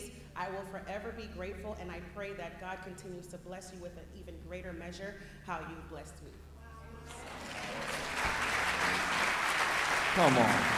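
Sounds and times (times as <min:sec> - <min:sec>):
speech: 0:00.4 - 0:07.8, 0:10.2 - 0:10.7
audience applause: 0:07.1 - 0:10.7.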